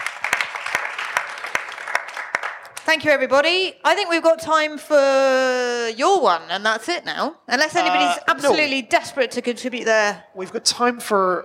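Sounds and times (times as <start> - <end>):
audience applause: 0.0 - 2.8
speech: 2.9 - 11.4.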